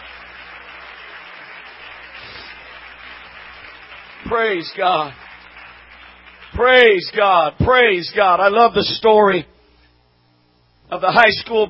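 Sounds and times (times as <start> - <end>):
audience clapping: 0.0 - 7.6
speech: 4.2 - 5.2, 6.5 - 9.5, 10.9 - 11.6.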